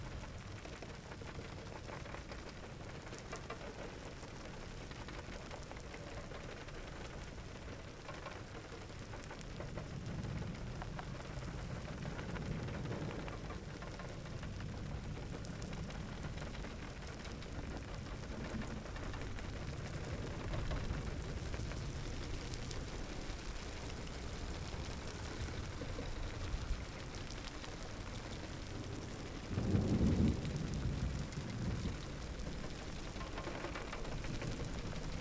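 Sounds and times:
summer rain hiss in Carroqueiro, Idanha-a-Nova, Portugal: 0.0s - 35.1s
low rolling thunder rumbles of a summer thunderstorm: 9.1s - 35.1s.

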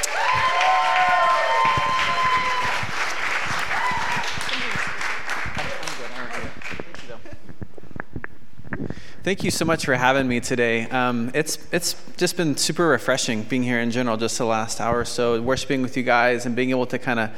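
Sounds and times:
audience applause welcoming a pastor at a foster care gathering: 0.0s - 7.2s
speech: 9.3s - 17.3s.

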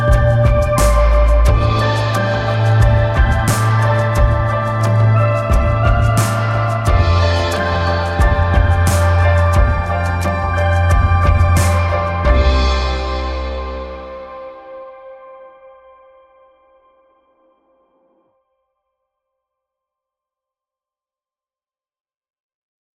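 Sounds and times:
instrumental music: 0.0s - 15.0s.

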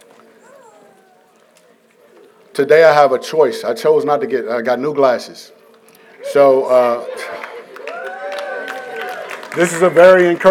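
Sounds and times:
speech: 2.6s - 5.6s, 6.3s - 7.3s, 9.6s - 10.4s
few people clapping: 7.3s - 10.4s.

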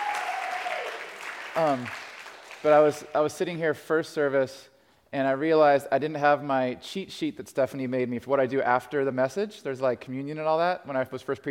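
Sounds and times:
audience applause: 0.0s - 2.9s
speech: 1.6s - 2.0s, 2.6s - 11.4s.

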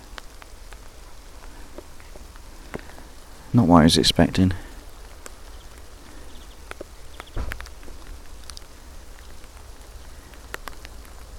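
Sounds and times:
rain outdoors: 0.0s - 11.3s
wind outdoors: 0.0s - 11.3s
speech: 3.5s - 4.6s.

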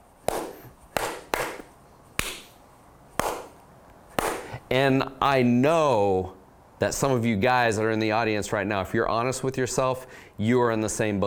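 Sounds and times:
clumsy hand clapping: 0.3s - 2.5s, 3.2s - 3.6s, 4.2s - 4.6s
speech: 4.7s - 11.2s.

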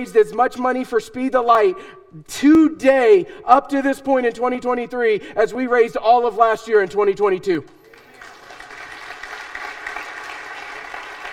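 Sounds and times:
speech: 0.0s - 7.8s
audience applause: 7.8s - 11.3s.

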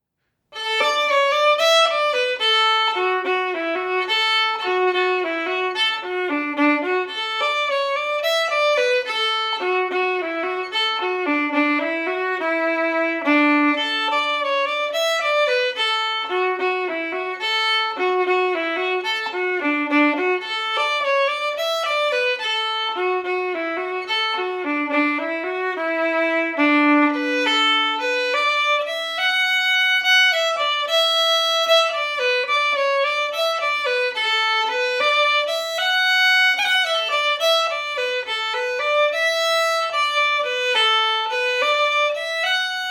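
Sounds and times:
jig tune: 0.6s - 42.5s.

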